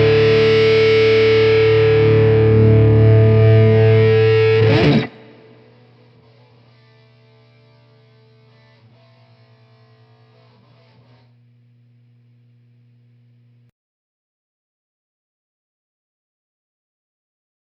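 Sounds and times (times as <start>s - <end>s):
lead guitar through a Marshall DSL amplifier: 0.0s - 11.5s.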